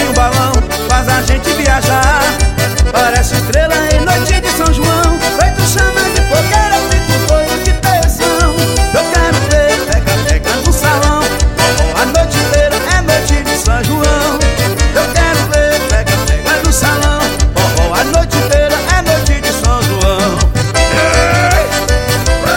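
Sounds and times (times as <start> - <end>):
forro music: 0.0 - 22.5.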